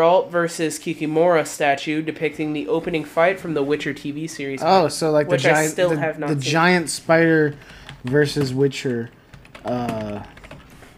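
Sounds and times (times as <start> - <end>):
speech: 0.0 - 10.4
typing on a computer keyboard: 7.5 - 10.9.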